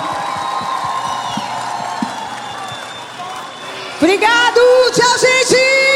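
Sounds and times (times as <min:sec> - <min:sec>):
crowd clapping: 0:00.0 - 0:04.7
scattered whoops and whistles from a crowd: 0:00.4 - 0:04.0
speech: 0:04.0 - 0:05.8.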